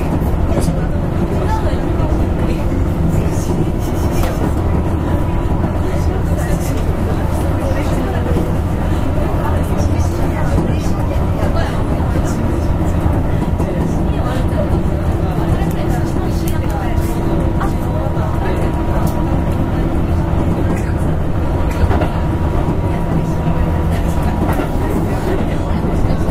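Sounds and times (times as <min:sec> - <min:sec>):
Keihan 6000 series train running rumble: 0:00.0 - 0:26.3
murmured voices: 0:00.0 - 0:26.3.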